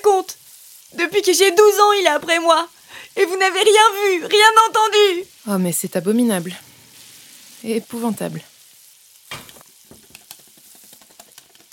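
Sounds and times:
sauce sizzling as it is stirred: 0.0 - 11.7
speech: 1.0 - 6.7, 7.6 - 8.5
utensil scraping and stirring through sauce: 9.4 - 11.7.

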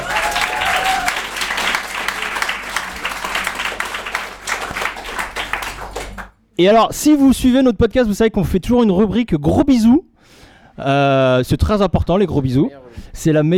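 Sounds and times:
audience applause: 0.0 - 6.3
speech: 6.6 - 10.1, 10.8 - 13.5.

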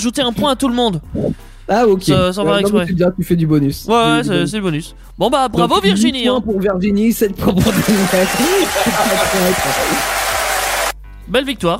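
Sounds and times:
speech: 0.0 - 10.3, 11.3 - 11.7
laughter: 7.6 - 10.9
applause: 7.6 - 11.0.

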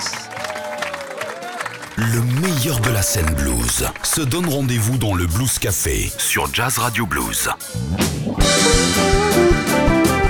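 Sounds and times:
audience applause: 0.0 - 6.3
speech: 2.0 - 9.2.

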